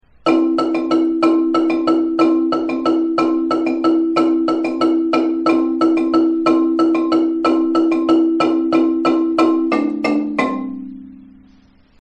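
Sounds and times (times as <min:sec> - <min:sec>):
marimba transition: 0:00.2 - 0:11.9.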